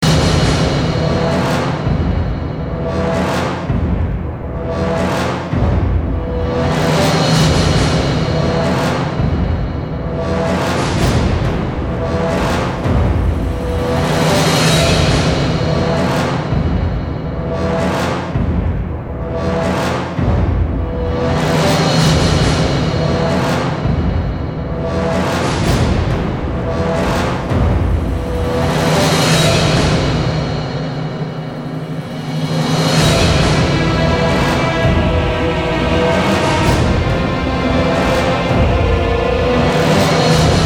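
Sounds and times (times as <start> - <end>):
tense ambient music: 0.0 - 40.6.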